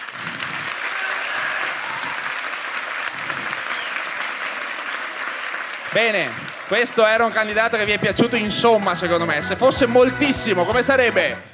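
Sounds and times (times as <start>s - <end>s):
audience applause: 0.0s - 7.8s
speech: 6.0s - 11.5s.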